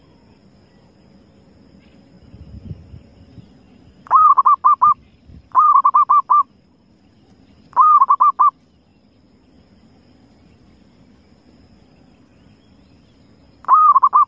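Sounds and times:
zebra dove cooing: 4.1s - 6.5s, 7.8s - 8.5s, 13.6s - 14.2s.

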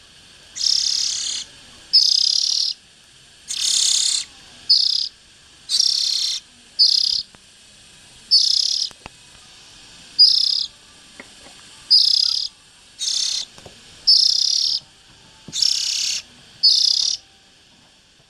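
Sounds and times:
Oriental magpie-robin hissing bursts: 0.3s - 14.8s, 15.5s - 17.2s.

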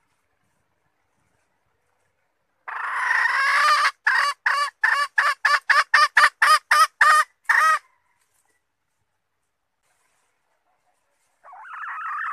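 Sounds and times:
red junglefowl hen calling: 2.6s - 8.6s, 11.4s - 12.3s.

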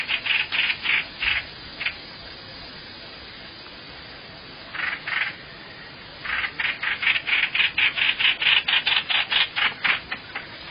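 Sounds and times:
bird rasping calls: 0.0s - 2.0s, 4.7s - 5.4s, 6.2s - 10.7s.

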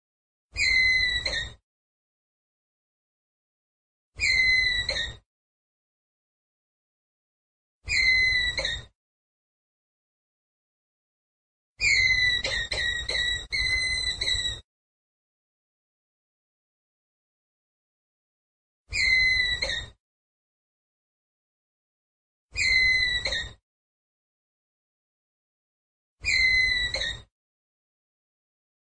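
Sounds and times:
ground squirrel whistled call: 0.6s - 1.5s, 4.2s - 5.2s, 7.9s - 8.8s, 11.8s - 14.6s, 18.9s - 19.9s, 22.6s - 23.6s, 26.2s - 27.2s.

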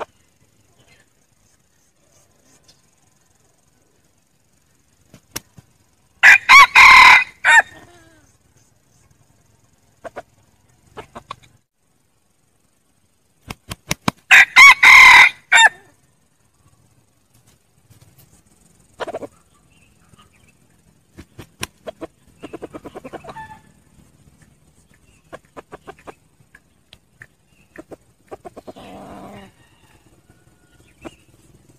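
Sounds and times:
red junglefowl crow: 6.2s - 8.1s, 14.3s - 16.0s, 21.8s - 23.8s, 27.8s - 31.4s
red junglefowl clucking: 10.0s - 11.6s, 18.9s - 20.4s, 21.6s - 23.8s, 24.4s - 30.0s.

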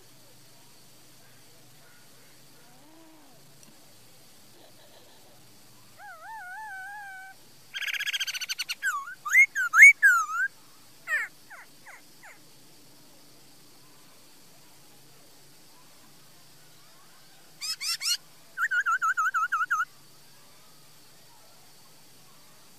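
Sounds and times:
laughingthrush song: 7.8s - 10.5s, 17.6s - 19.9s.

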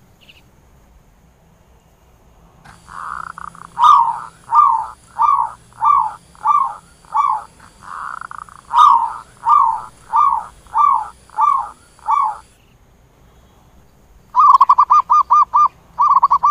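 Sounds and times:
zebra dove cooing: 2.7s - 12.6s, 14.4s - 16.4s.

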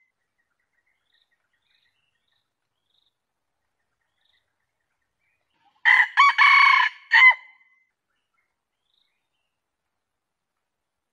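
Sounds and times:
junglefowl crowing: 5.8s - 7.5s.

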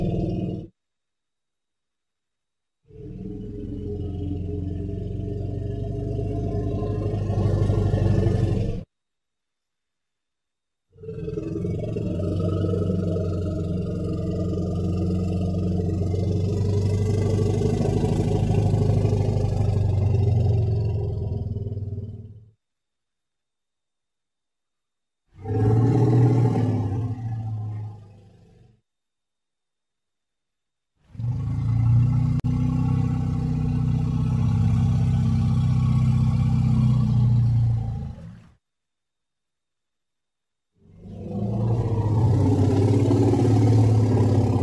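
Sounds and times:
elephant rumble: 0.0s - 0.7s, 2.9s - 8.9s, 11.0s - 22.5s, 25.4s - 28.7s, 31.1s - 38.6s, 40.8s - 44.6s.

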